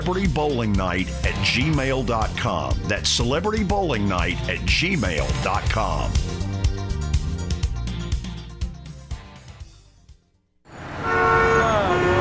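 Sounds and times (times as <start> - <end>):
speech: 0.0 - 6.5
music: 0.0 - 10.6
busy city traffic roar in Nashville: 10.7 - 12.1
honk-like notes in city traffic: 10.7 - 12.1.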